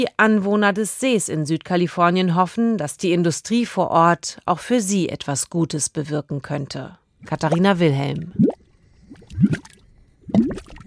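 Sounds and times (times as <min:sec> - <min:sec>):
speech: 0:00.0 - 0:08.5, 0:09.4 - 0:09.7
mud volcanoes bubbling near the Salton Sea, California: 0:07.2 - 0:10.8
quiet low rumble: 0:07.2 - 0:10.8.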